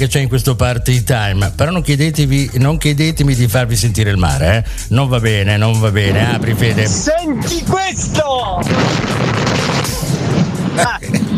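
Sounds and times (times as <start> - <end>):
speech: 0.0 - 9.7, 10.8 - 11.3
truck exploding: 8.6 - 11.3.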